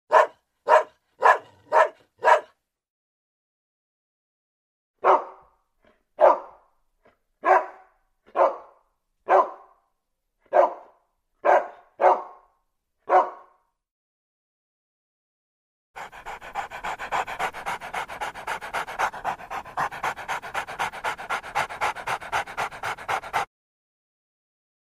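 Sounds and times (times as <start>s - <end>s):
dog barking: 0.1s - 2.6s, 5.0s - 6.8s, 7.4s - 13.7s, 16.0s - 23.5s.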